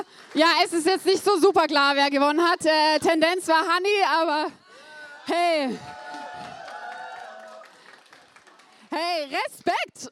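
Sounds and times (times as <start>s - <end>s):
speech: 0.1s - 4.6s, 5.3s - 6.0s, 8.9s - 10.1s
crowd cheering: 4.8s - 9.4s
audience applause: 5.9s - 9.1s.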